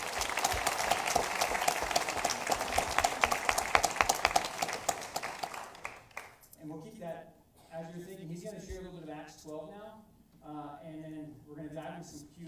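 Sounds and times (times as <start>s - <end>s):
audience applause welcoming a speaker at a church gathering: 0.0s - 6.4s
speech: 11.3s - 12.4s.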